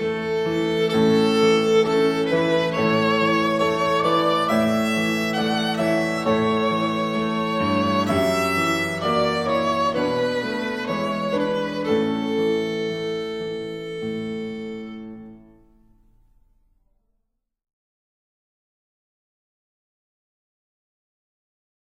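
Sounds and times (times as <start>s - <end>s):
strings: 0.0s - 16.3s.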